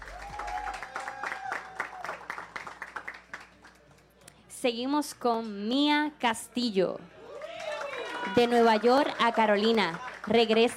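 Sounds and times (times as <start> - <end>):
audience applause: 0.0 - 3.8, 7.3 - 10.7
speech: 4.6 - 7.2, 8.3 - 10.7.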